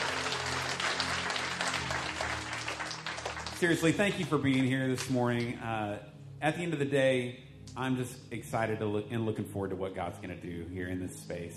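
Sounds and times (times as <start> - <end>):
church congregation clapping at the close of a weekend service: 0.0 - 5.6
speech: 3.6 - 11.5.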